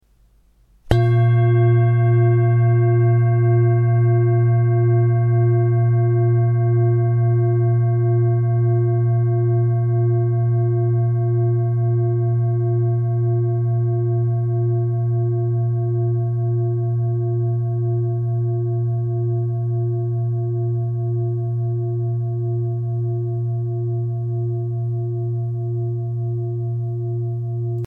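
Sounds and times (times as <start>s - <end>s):
singing bowl: 0.9s - 27.8s.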